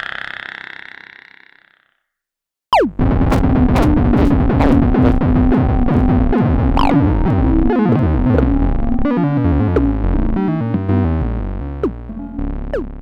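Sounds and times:
5U modular synthesizer effects: 2.7 - 13.0.

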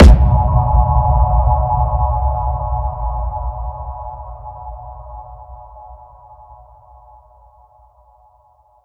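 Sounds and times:
submarine impact: 0.0 - 2.8.

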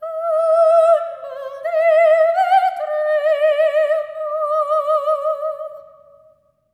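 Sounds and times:
soprano voices singing: 0.0 - 5.8.

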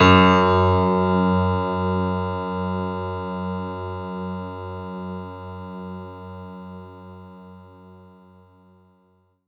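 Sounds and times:
synth note F#2: 0.0 - 2.5.

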